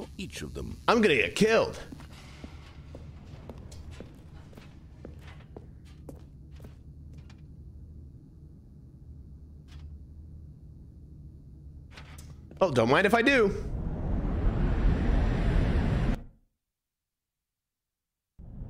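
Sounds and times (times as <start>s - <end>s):
speech: 0.2s - 2.0s, 12.6s - 13.8s
low hum: 0.2s - 12.5s, 13.4s - 16.4s
footsteps walking forward in the video game The Stanley Parable Ultra Deluxe: 1.6s - 7.4s.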